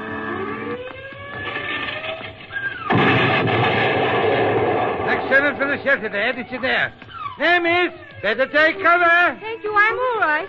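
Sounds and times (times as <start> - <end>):
rising whine and rumbling drone of rocket bombs during air raid: 0.0 - 8.6
crackling din: 0.0 - 9.3
wartime rocket bomb explosion during an air raid: 2.9 - 6.1
speech: 5.4 - 10.4.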